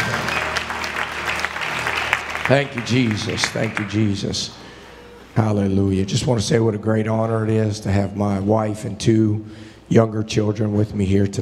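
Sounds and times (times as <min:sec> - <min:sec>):
crowd applauding: 0:00.0 - 0:04.8
speech: 0:02.5 - 0:04.6, 0:05.4 - 0:11.4.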